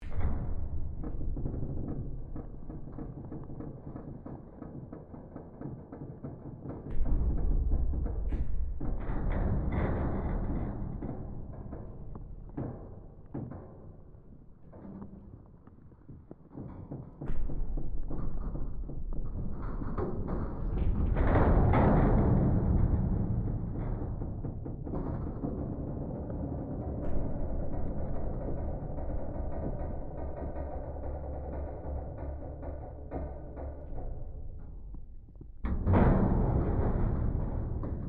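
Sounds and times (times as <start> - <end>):
ship hull impacts: 0.0 - 38.0.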